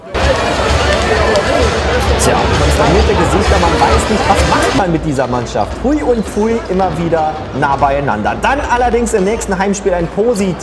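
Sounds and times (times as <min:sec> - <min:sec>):
crowd booing in the Arena Trier: 0:00.0 - 0:04.8
speech: 0:02.3 - 0:10.6.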